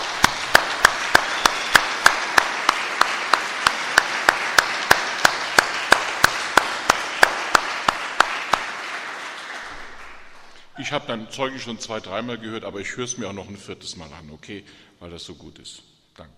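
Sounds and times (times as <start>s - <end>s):
audience applause: 0.0s - 11.0s
speech: 10.9s - 16.3s.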